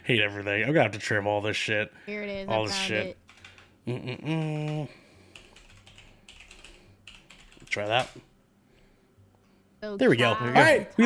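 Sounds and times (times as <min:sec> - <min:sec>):
speech: 0:00.1 - 0:03.2, 0:03.9 - 0:05.0, 0:07.7 - 0:08.3, 0:09.8 - 0:11.0
typing on a computer keyboard: 0:03.3 - 0:03.7, 0:04.3 - 0:08.2.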